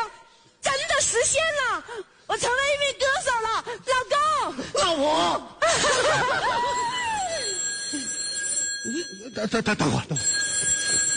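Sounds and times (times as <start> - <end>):
speech: 1.2 - 7.0, 8.9 - 10.4
laughter: 5.5 - 8.1
telephone ringing with a trilling bell: 6.6 - 11.1.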